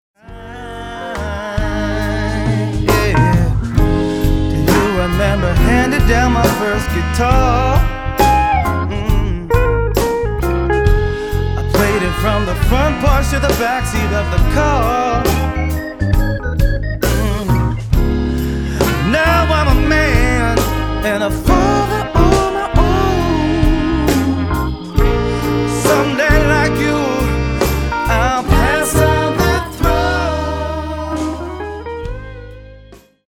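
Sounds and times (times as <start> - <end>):
Rhodes electric piano: 0.2 - 33.2
organ: 0.2 - 33.2.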